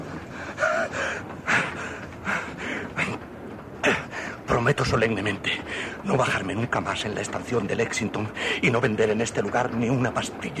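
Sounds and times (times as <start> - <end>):
person gasping for breath: 0.3 - 3.0
speech: 4.6 - 10.5.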